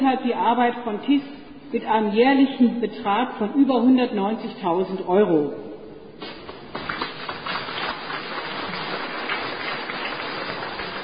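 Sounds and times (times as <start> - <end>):
speech: 0.0 - 6.4
applause: 6.5 - 11.0.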